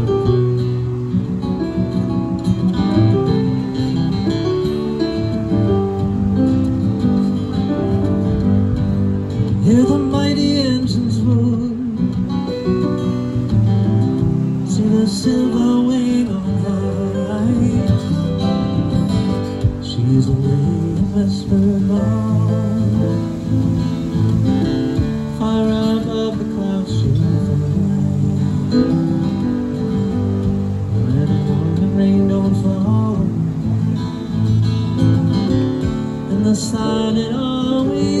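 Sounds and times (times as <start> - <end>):
guitar: 0.0 - 38.1
piano: 0.0 - 38.1.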